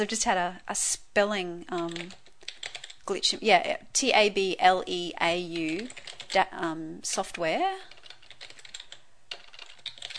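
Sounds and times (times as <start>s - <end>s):
speech: 0.0s - 2.2s, 3.1s - 8.0s
typing on a computer keyboard: 1.7s - 3.0s, 5.5s - 6.5s, 7.8s - 10.1s.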